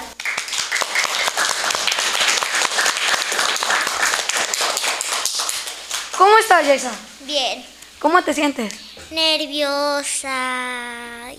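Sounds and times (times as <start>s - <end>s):
crowd applauding: 0.0s - 7.0s
speech: 6.4s - 11.3s.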